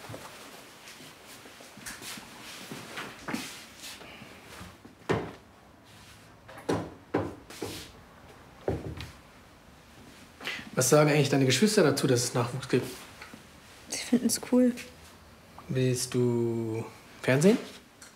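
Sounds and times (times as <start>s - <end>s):
cupboard opened and closed with wooden knocks and clattering thuds: 6.4s - 7.9s
speech: 10.8s - 13.0s, 14.1s - 15.0s, 15.7s - 17.7s.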